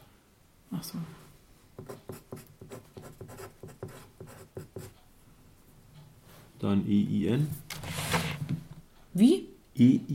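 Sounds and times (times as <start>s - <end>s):
speech: 0.8s - 1.2s, 6.6s - 7.6s, 9.2s - 10.1s
pen writing letters on paper during an escape game: 1.8s - 5.0s.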